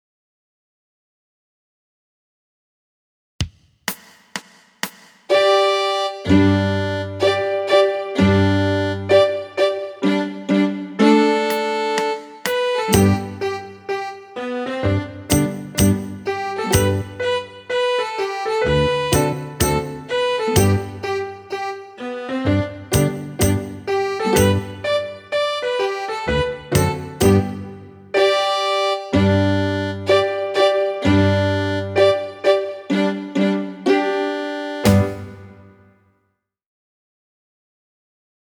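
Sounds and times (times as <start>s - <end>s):
slow American fiddle tune: 5.3s - 35.8s.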